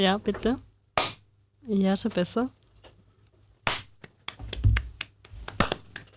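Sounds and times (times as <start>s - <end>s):
speech: 0.0s - 0.7s, 1.6s - 2.6s
hand clap as sync marker: 3.7s - 6.1s
soft taps and knocks: 4.3s - 5.6s.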